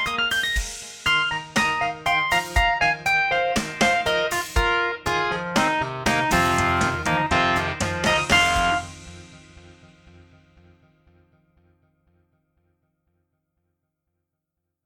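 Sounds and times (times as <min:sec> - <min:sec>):
vintage tines electric piano: 0:00.0 - 0:09.8.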